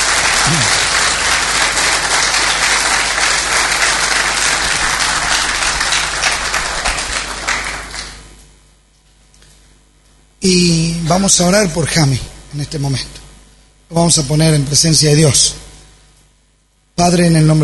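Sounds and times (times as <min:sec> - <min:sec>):
crowd applause for visiting churches: 0:00.0 - 0:08.2
speech: 0:10.4 - 0:13.2, 0:13.9 - 0:15.7, 0:17.0 - 0:17.6.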